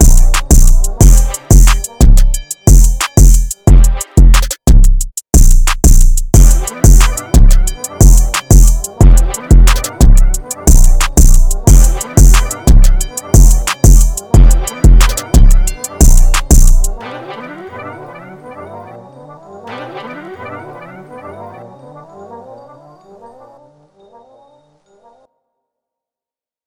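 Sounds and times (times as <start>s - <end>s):
beat at 180 bpm: 0.0s - 17.0s.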